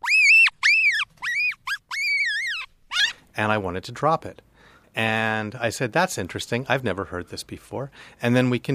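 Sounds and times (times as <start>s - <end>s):
baby marmot scream: 0.0s - 3.2s
speech: 3.4s - 8.7s.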